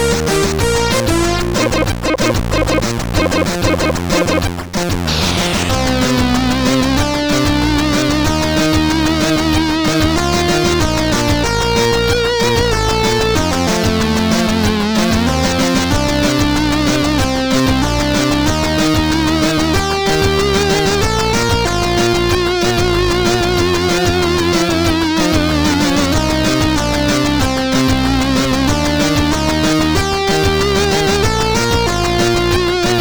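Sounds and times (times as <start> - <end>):
tracker music on a CSG8580R5 sound chip: 0.0 - 33.0.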